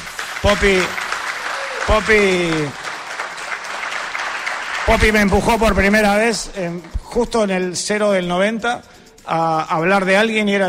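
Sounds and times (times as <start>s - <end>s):
audience applause: 0.0s - 7.0s
speech: 0.4s - 1.0s, 1.8s - 2.8s, 4.9s - 10.6s.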